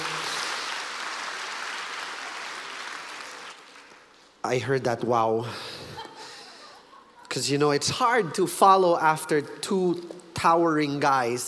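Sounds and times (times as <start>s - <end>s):
crowd applauding: 0.0s - 4.3s
speech: 4.4s - 5.8s, 7.4s - 11.4s.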